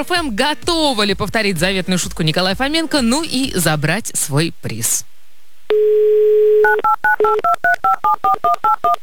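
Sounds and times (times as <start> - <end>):
speech: 0.0 - 5.1, 5.7 - 9.0
telephone dialing tones: 5.7 - 9.0.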